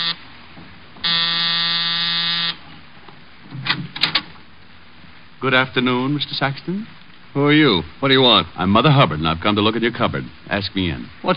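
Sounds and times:
apartment door buzzer being pressed: 0.0s - 0.2s, 1.0s - 2.6s
speech: 5.4s - 11.3s.

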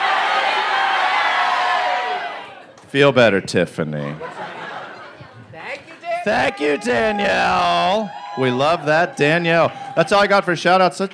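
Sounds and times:
audience yelling their full names: 0.0s - 2.7s, 5.6s - 11.1s
speech: 2.9s - 4.4s, 6.2s - 11.1s
laughter: 4.0s - 10.1s.

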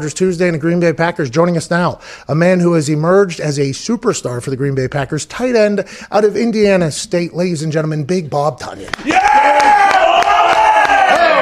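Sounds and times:
speech: 0.0s - 9.9s
crowd cheering and whooping: 8.9s - 11.3s
sharp claps: 8.9s - 11.3s.

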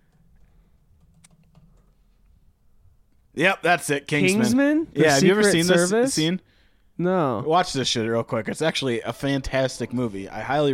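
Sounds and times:
keystrokes on a computer keyboard typing a YouTube search: 0.0s - 2.0s
speech: 3.4s - 10.7s.

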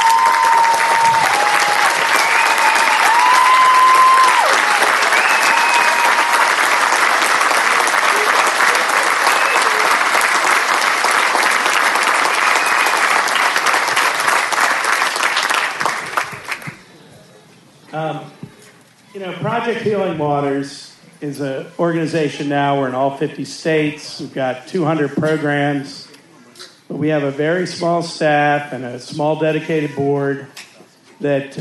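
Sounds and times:
large audience applauding: 0.0s - 16.9s
speech: 19.6s - 26.0s, 27.0s - 30.6s, 31.2s - 31.5s.

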